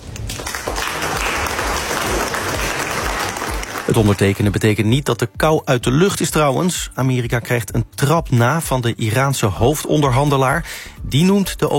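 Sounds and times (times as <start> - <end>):
applause after treaty signing: 0.0 - 4.6
speech: 3.9 - 11.7.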